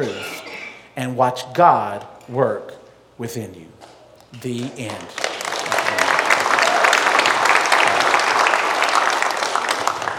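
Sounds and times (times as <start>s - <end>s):
speech: 0.0s - 0.3s, 1.0s - 5.3s
polite sympathy clapping from a small group: 4.4s - 10.1s.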